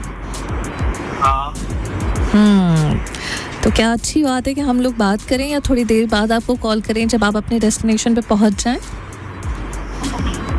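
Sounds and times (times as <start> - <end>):
road rumble from a car being driven: 0.0 - 10.5
speech: 2.3 - 3.1, 3.7 - 9.0.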